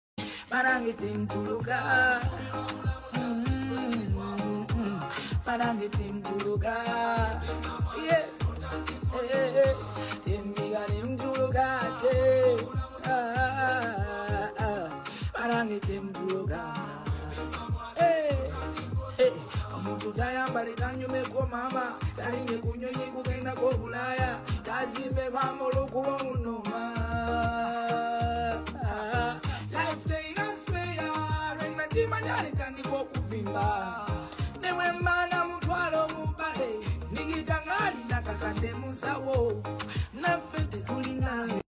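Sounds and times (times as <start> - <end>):
trending song: 0.2 - 41.6.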